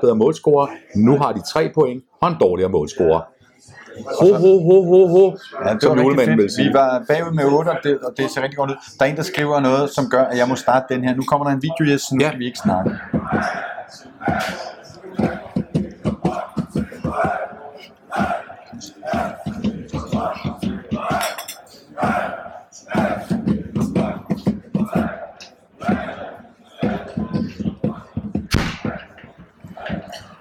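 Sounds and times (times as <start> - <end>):
speech: 0.0 - 15.4
large stadium crowd chanting in unison: 12.2 - 30.3
rhythmic claps or drum hits: 12.6 - 30.3.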